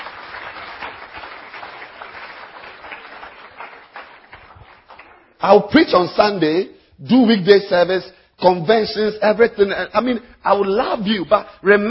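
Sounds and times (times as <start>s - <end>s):
audience clapping: 0.0s - 5.6s
speech: 5.4s - 11.8s.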